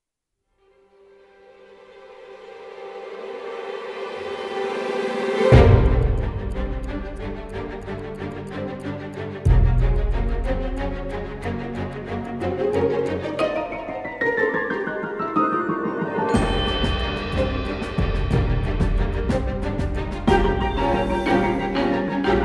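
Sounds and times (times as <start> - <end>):
orchestra: 1.1 - 22.4.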